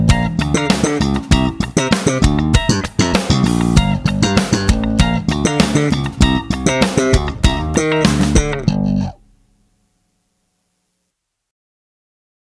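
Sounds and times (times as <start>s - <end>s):
practice music track: 0.0s - 9.6s.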